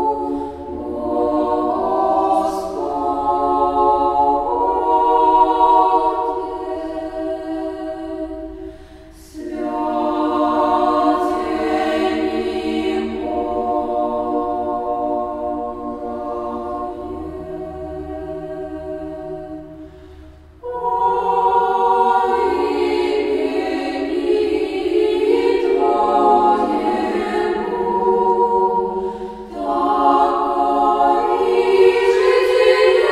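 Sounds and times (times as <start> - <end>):
children's choir singing: 0.0 - 33.0.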